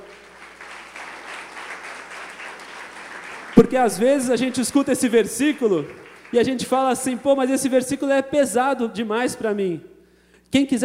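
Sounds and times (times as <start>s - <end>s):
audience applause: 0.0s - 7.2s
speech: 3.6s - 9.9s, 10.5s - 10.8s.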